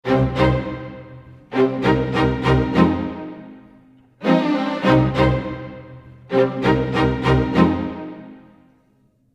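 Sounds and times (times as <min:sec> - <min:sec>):
string ensemble: 0:00.0 - 0:08.8.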